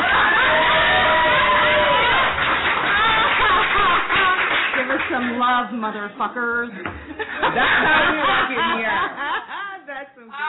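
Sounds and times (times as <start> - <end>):
audience shouting and whooping: 0.0 - 4.3
laughter: 0.0 - 5.5, 6.8 - 9.9
audience clapping: 0.0 - 5.8
speech: 5.6 - 9.4.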